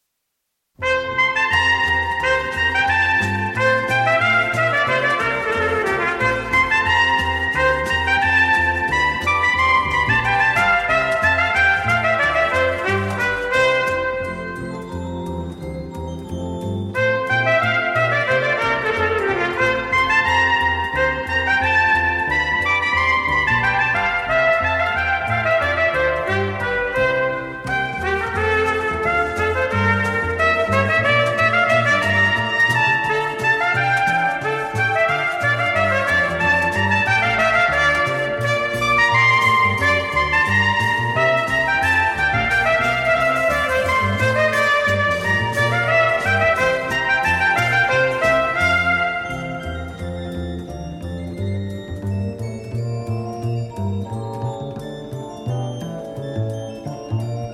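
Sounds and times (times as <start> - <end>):
orchestral gavotte in D major: 0.8 - 57.5.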